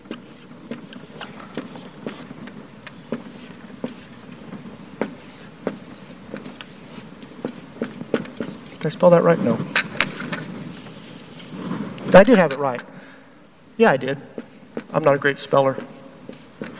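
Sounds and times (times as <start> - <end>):
writing on a board: 0.0 - 9.1, 10.3 - 11.6, 14.4 - 15.1, 15.7 - 16.7
speech: 8.9 - 9.8, 12.1 - 12.9, 13.8 - 15.9.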